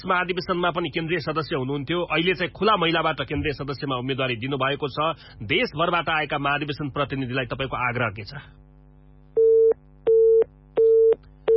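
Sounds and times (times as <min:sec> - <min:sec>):
speech: 0:00.0 - 0:08.7
phone line busy tone after a call is disconnected: 0:09.4 - 0:11.5.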